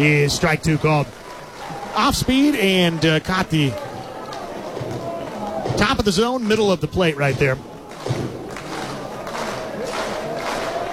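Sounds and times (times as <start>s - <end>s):
speech: 0.0s - 1.2s, 2.0s - 3.9s, 5.8s - 8.2s
fans clapping: 0.0s - 10.9s.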